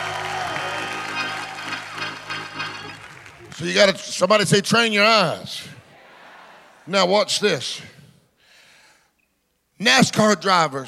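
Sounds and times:
people shouting and cheering praise: 0.0 - 2.9
audience applause: 0.0 - 3.9
speech: 3.6 - 5.7, 6.9 - 8.0, 9.8 - 10.8.

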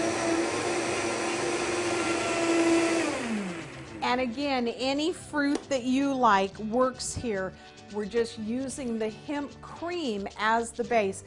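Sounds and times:
blender whipping a creamy smoothie: 0.0 - 4.5
speech: 4.1 - 11.2.

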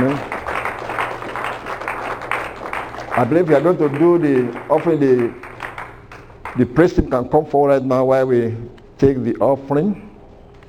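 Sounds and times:
audience clapping: 0.0 - 7.1
speech: 3.2 - 5.4, 6.6 - 10.1.

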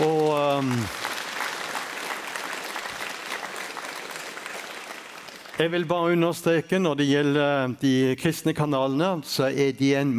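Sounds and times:
summer conference crowd clapping for a Christian TV channel's staff: 0.0 - 5.9
speech: 5.6 - 10.1.

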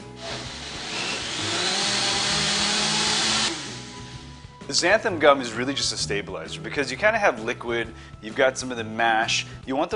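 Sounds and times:
blender running: 0.0 - 4.2
speech: 4.7 - 9.9.

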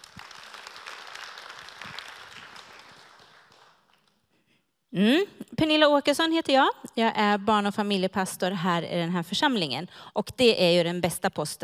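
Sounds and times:
audience applause: 0.0 - 4.1
speech: 4.9 - 11.6.

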